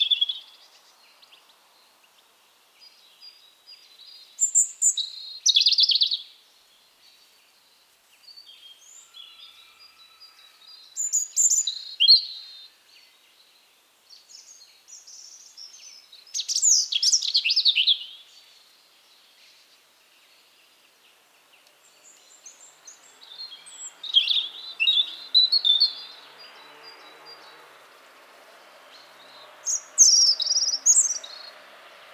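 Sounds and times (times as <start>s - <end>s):
European robin singing: 4.1s - 6.3s, 8.4s - 12.8s, 14.2s - 18.5s, 21.8s - 31.6s.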